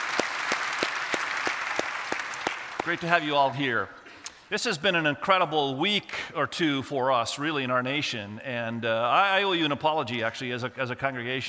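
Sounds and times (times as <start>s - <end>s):
congregation clapping across church campuses: 0.0s - 3.5s
speech: 2.8s - 11.4s.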